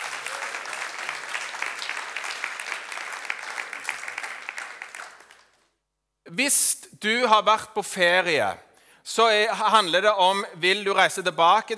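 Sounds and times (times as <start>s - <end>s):
audience applause: 0.0s - 5.6s
speech: 6.3s - 11.7s.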